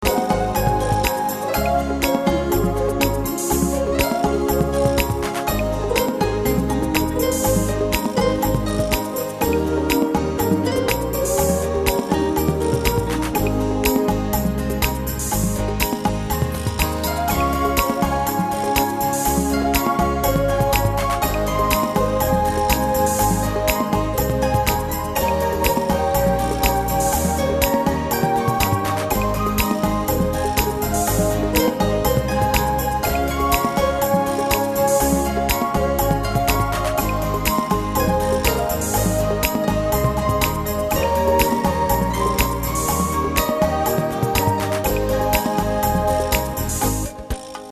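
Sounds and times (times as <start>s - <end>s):
modern beguine music: 0.0s - 47.7s.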